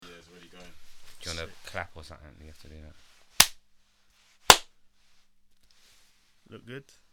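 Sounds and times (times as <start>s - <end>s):
speech: 2.0s - 3.2s, 6.5s - 7.0s
hand clap: 3.4s - 3.6s, 4.5s - 4.7s.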